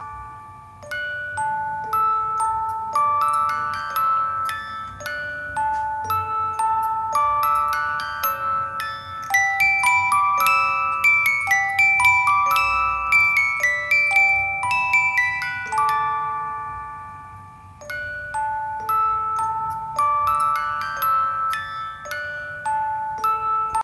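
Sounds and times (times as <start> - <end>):
music box: 0.0 - 23.8.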